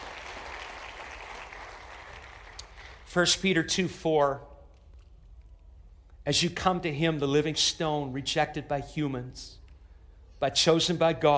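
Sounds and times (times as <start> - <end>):
audience clapping: 0.0 - 3.0
speech: 3.1 - 4.5, 6.3 - 9.6, 10.4 - 11.3.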